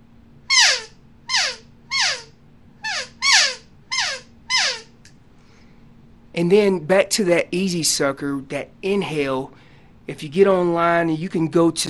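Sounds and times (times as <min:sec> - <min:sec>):
elk calf calls blown on an open reed call: 0:00.5 - 0:05.0
speech: 0:06.4 - 0:11.8.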